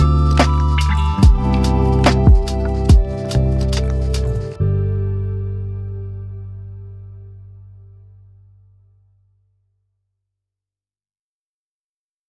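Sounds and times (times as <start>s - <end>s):
lofi hip hop: 0.0s - 4.9s.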